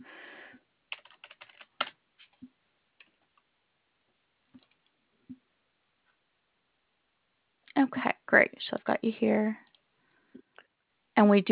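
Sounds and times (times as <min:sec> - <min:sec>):
typing on a computer keyboard: 0:00.9 - 0:02.0
speech: 0:07.8 - 0:09.6, 0:11.2 - 0:11.5.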